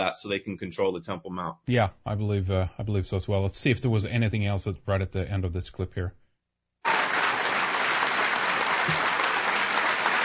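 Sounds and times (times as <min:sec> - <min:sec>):
speech: 0:00.0 - 0:06.2
thunderous applause: 0:06.9 - 0:10.2.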